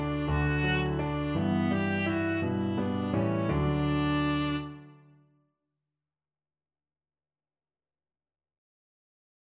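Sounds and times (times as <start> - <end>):
viola: 0.0 - 5.1.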